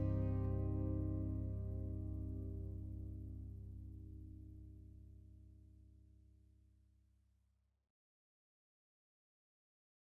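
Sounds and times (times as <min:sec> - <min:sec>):
i VII VI V7 chord progression: 0:00.0 - 0:05.3.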